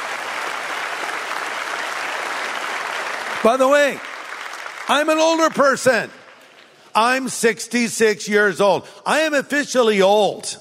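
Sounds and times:
audience applause: 0.0s - 6.6s
speech: 3.4s - 4.1s, 4.9s - 6.2s, 7.0s - 10.6s.

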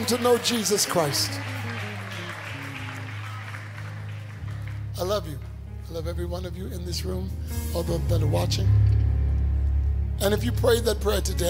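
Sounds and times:
speech: 0.0s - 1.6s, 5.0s - 9.0s, 10.2s - 11.4s
audience clapping hands: 0.0s - 5.6s.

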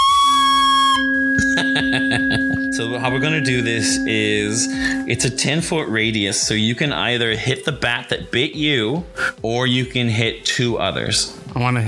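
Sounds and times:
person whistling a tune imitating a flute: 0.0s - 5.9s
speech: 1.8s - 11.8s.

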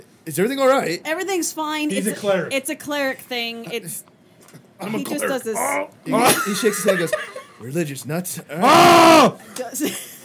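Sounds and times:
speech: 0.0s - 4.1s, 4.8s - 10.1s
laughter: 5.6s - 7.6s
people screaming: 8.6s - 9.4s.

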